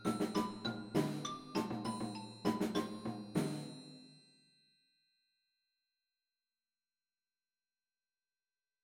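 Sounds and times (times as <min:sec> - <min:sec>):
percussion: 0:00.0 - 0:04.8.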